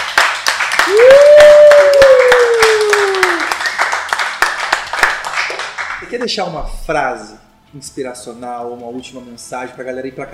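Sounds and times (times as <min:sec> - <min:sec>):
audience applause: 0:00.0 - 0:06.1
speech: 0:00.9 - 0:01.4, 0:06.2 - 0:10.3.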